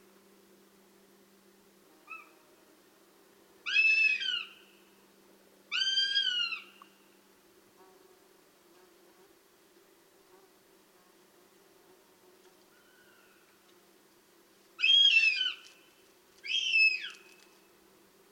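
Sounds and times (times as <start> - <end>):
goshawk begging call: 2.1 - 2.4, 3.6 - 4.6, 5.7 - 6.7, 14.8 - 15.7, 16.4 - 17.2.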